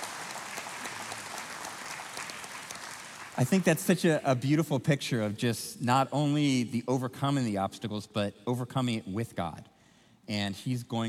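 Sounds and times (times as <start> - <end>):
audience clapping: 0.0 - 4.2
speech: 3.4 - 9.7, 10.3 - 11.0.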